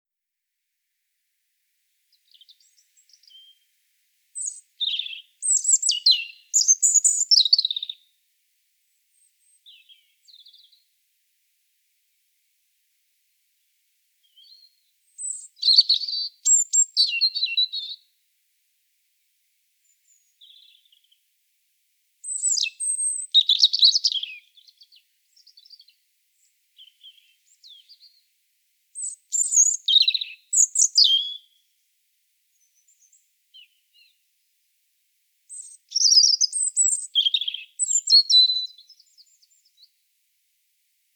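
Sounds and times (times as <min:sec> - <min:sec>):
European robin song of thin notes, trills and whistles: 0:02.1 - 0:03.7, 0:04.4 - 0:08.2, 0:08.9 - 0:10.9, 0:14.2 - 0:18.1, 0:19.8 - 0:21.2, 0:22.2 - 0:28.3, 0:29.0 - 0:31.6, 0:35.5 - 0:40.0.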